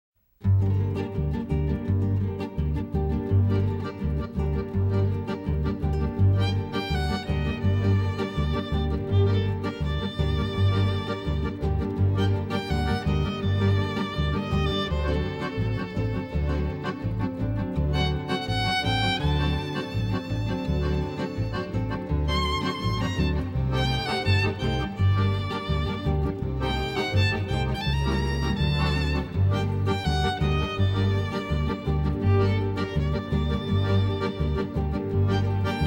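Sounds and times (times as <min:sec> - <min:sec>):
instrumental music: 0:00.4 - 0:35.8.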